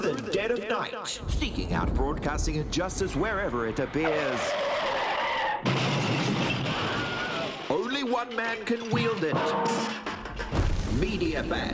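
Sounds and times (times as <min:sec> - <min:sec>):
speech: 0:00.4 - 0:04.9, 0:08.2 - 0:10.1, 0:10.9 - 0:11.7
tyre skid in a car crash sound effect in a radio jingle: 0:03.2 - 0:10.9
car crash impact sound effect in a radio jingle: 0:05.4 - 0:11.4.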